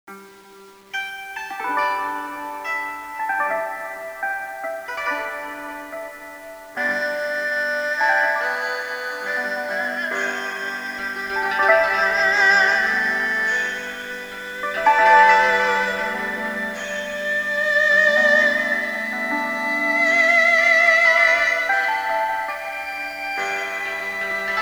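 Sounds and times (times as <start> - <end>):
Asian background music: 0.1 - 24.6.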